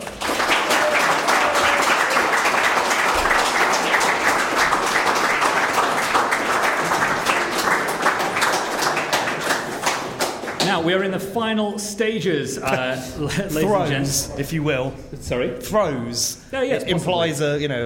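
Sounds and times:
audience applause: 0:00.0 - 0:10.8
speech: 0:10.8 - 0:17.8.

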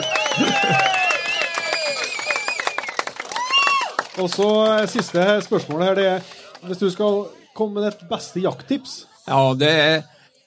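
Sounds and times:
audience applause: 0:00.0 - 0:07.2
speech: 0:04.2 - 0:10.2.

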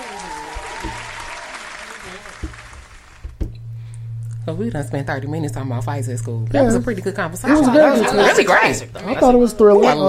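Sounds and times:
clapping for a guest: 0:00.0 - 0:03.3
speech: 0:04.5 - 0:10.0.

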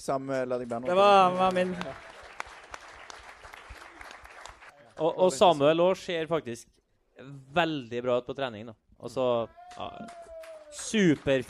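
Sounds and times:
speech: 0:00.0 - 0:02.1, 0:05.0 - 0:11.4
live audience applause: 0:00.7 - 0:04.8, 0:09.7 - 0:11.4.

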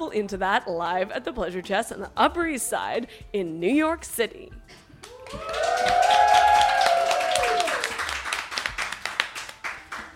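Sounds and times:
speech: 0:00.0 - 0:06.4
loud high whoops and cheers: 0:05.0 - 0:08.0
studio audience applauding: 0:05.0 - 0:10.1.

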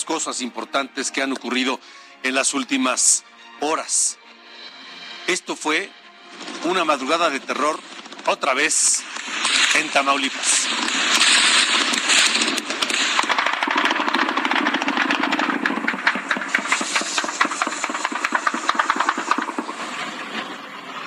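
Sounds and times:
speech: 0:00.1 - 0:04.3, 0:05.3 - 0:11.0
gunfire bursts during night shootouts: 0:06.4 - 0:20.4.

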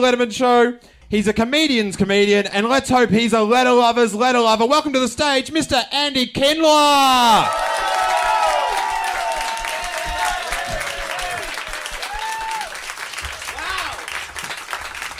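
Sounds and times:
speech: 0:00.0 - 0:07.8
whoops and cheers: 0:07.0 - 0:14.1
audience applause: 0:07.3 - 0:15.1.

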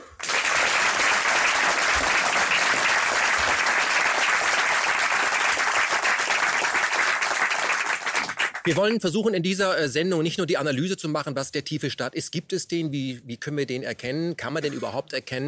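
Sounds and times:
audience applause: 0:00.0 - 0:08.8
speech: 0:08.7 - 0:15.4.

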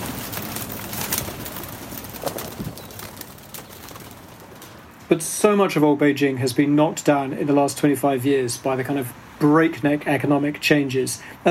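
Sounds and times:
pigeons cooing at rooftop coop: 0:00.0 - 0:04.8
pigeon wings fluttering: 0:00.0 - 0:05.1
busy outdoor noise: 0:00.0 - 0:11.4
bird calls: 0:02.1 - 0:04.2
speech: 0:05.1 - 0:11.4.

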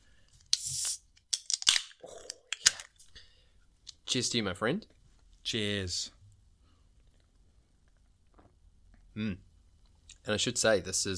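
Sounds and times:
beer cans cracking open: 0:00.6 - 0:03.1
speech: 0:04.1 - 0:06.2, 0:09.2 - 0:09.5, 0:10.3 - 0:11.1.

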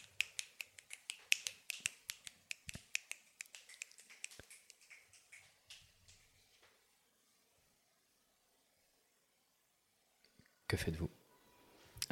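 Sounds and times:
many fingers snapping: 0:00.0 - 0:06.2
speech: 0:10.7 - 0:11.2.

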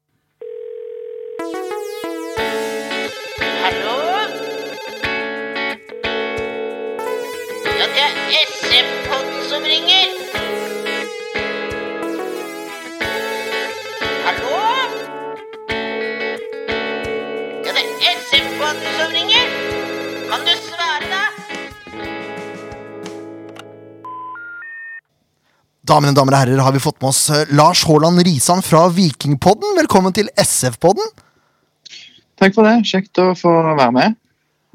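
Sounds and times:
telephone ringing tone for an outgoing call: 0:00.4 - 0:15.1, 0:16.0 - 0:20.5, 0:24.0 - 0:25.0
speech: 0:26.0 - 0:31.3, 0:32.4 - 0:34.2.

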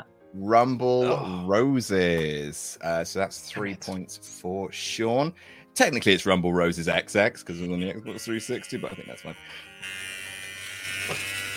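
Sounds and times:
speech: 0:00.0 - 0:10.1, 0:11.1 - 0:11.4
electric hair clippers buzzing: 0:07.7 - 0:11.5.

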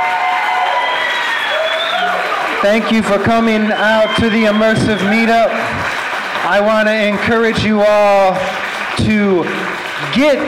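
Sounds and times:
cheers and whistles: 0:00.0 - 0:05.8
audience applause: 0:00.0 - 0:10.4
speech: 0:02.6 - 0:05.8, 0:06.4 - 0:10.4.

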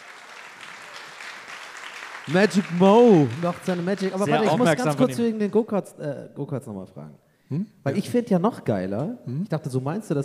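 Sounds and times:
crowd clapping: 0:00.0 - 0:05.6
speech: 0:02.3 - 0:10.2.

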